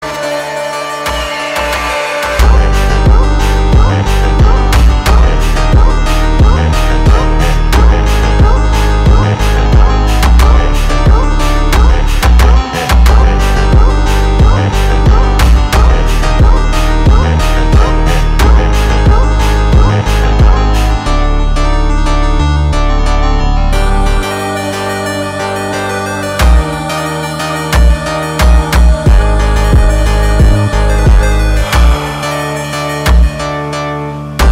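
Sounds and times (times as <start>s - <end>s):
Brazilian funk music: 0.0s - 34.5s.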